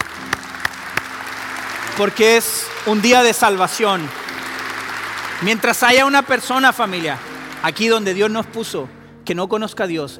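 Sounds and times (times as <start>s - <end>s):
applause: 0.0s - 8.9s
speech: 2.0s - 4.2s, 5.4s - 10.1s.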